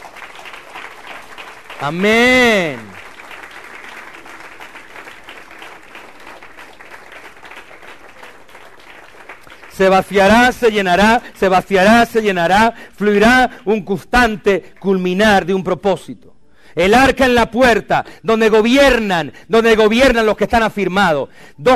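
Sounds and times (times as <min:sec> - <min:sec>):
audience applauding: 0:00.0 - 0:11.3
speech: 0:01.8 - 0:02.9, 0:09.8 - 0:21.7.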